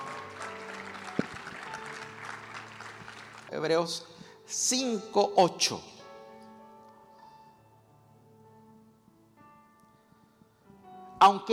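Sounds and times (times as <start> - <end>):
audience applause: 0.0 - 3.7
speech: 3.5 - 5.9, 11.3 - 11.5.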